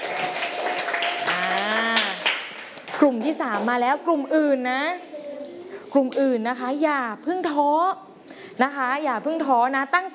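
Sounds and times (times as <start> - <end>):
class clapping for a group's correct quiz answer: 0.0 - 3.8
speech: 3.0 - 5.1, 5.9 - 10.1.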